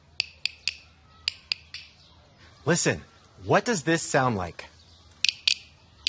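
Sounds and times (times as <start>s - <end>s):
güiro tapped with a stick: 0.2s - 1.9s
speech: 2.6s - 4.7s.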